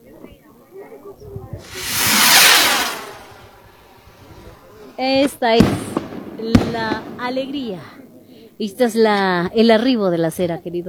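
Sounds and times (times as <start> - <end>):
firework rockets hissing: 1.6 - 7.4
speech: 5.0 - 5.8, 6.4 - 8.0, 8.6 - 10.8.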